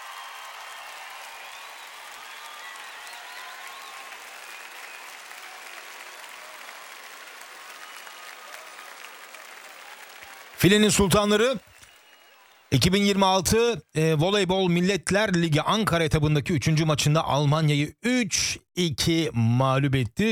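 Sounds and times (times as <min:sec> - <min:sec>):
crowd applauding: 0:00.0 - 0:13.4
speech: 0:10.6 - 0:11.7, 0:12.7 - 0:20.2.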